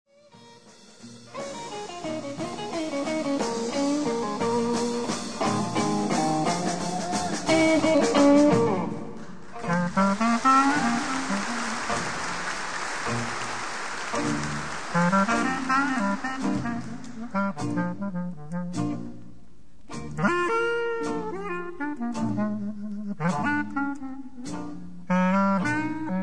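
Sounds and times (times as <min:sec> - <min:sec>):
swing music: 0:00.1 - 0:26.2.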